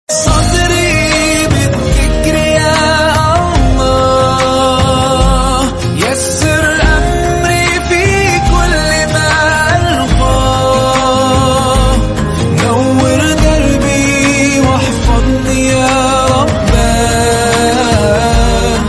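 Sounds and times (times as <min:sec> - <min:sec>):
Arabic ringtone melody: 0:00.2 - 0:18.8.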